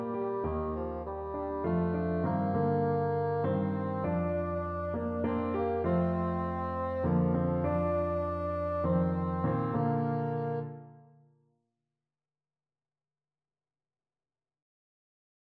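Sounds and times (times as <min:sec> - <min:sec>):
bassoon playing a folk tune: 0:00.0 - 0:11.0.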